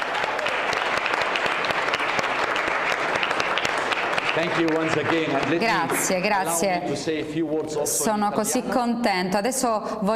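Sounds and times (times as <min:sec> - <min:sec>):
crowd clapping: 0:00.0 - 0:06.8
speech: 0:04.4 - 0:10.1.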